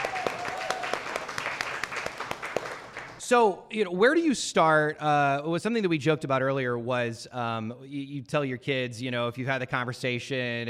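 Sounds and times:
crowd applauding: 0:00.0 - 0:03.2
speech: 0:03.3 - 0:10.6.

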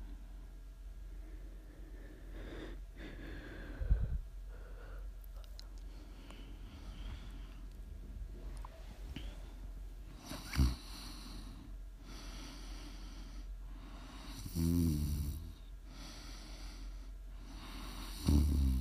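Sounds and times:
constant low hum: 0:00.0 - 0:14.0
snoring: 0:10.2 - 0:11.5, 0:14.3 - 0:15.6, 0:17.6 - 0:18.7.

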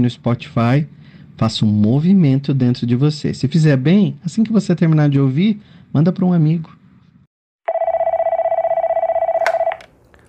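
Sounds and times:
speech: 0:00.0 - 0:06.8
telephone ringing: 0:07.7 - 0:09.9.

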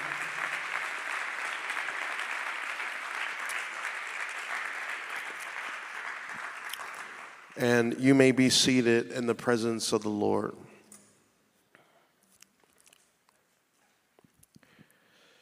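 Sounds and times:
audience clapping hands: 0:00.0 - 0:08.3
speech: 0:07.6 - 0:10.6.

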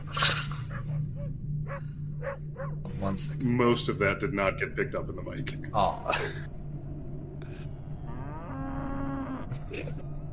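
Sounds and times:
dog low drawn-out rumbling groan: 0:00.2 - 0:02.9, 0:07.4 - 0:10.2
speech: 0:03.4 - 0:06.5.

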